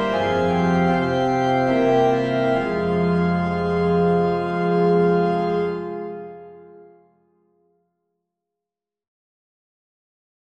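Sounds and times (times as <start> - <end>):
organ: 0.0 - 7.1.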